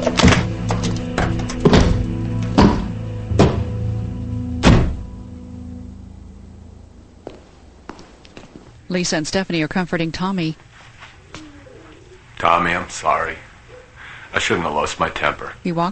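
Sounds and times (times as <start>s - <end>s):
briefcase full of cash thudding into a car trunk: 0.0s - 3.8s
speech: 8.9s - 10.7s, 12.4s - 13.5s, 14.3s - 15.9s.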